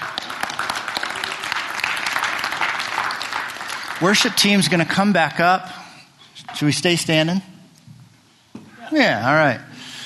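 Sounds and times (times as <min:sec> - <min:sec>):
audience applause: 0:00.0 - 0:05.0
speech: 0:04.0 - 0:05.8, 0:06.6 - 0:07.5, 0:08.9 - 0:09.7.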